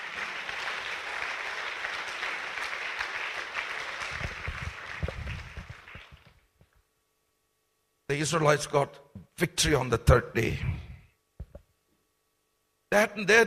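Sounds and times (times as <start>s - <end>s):
audience applause: 0.0s - 6.5s
speech: 8.1s - 10.8s, 12.9s - 13.4s
low thumps: 11.4s - 11.6s.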